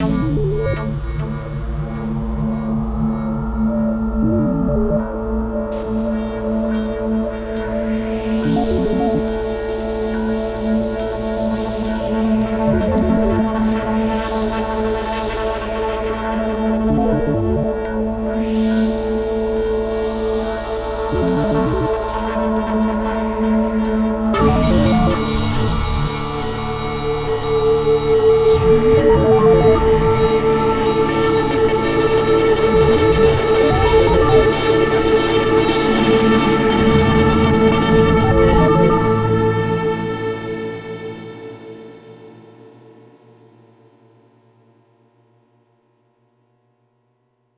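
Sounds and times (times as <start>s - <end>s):
ambient music: 0.0s - 43.6s.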